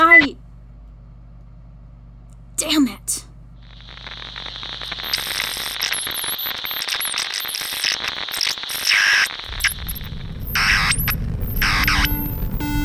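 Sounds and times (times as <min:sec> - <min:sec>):
harsh radio static from lost signal: 0:03.6 - 0:12.8
warbling electronic whistles: 0:03.8 - 0:12.8.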